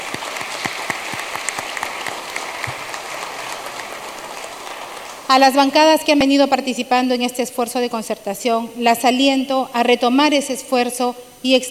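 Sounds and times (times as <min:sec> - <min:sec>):
applause: 0:00.0 - 0:06.0
speech: 0:05.3 - 0:11.6.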